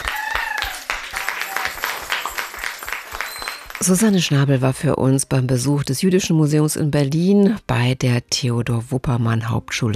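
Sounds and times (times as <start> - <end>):
applause: 0.0 - 4.3
speech: 3.8 - 9.9.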